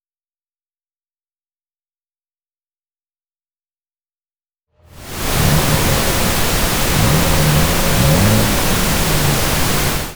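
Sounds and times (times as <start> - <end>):
engine revving: 5.0 - 10.1.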